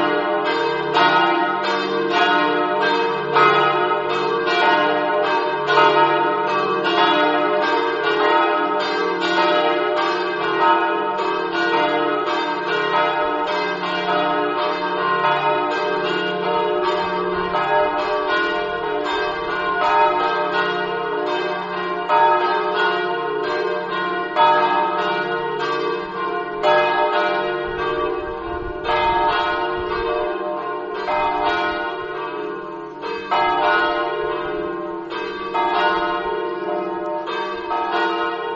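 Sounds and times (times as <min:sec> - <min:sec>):
church bells ringing: 0:00.0 - 0:38.5.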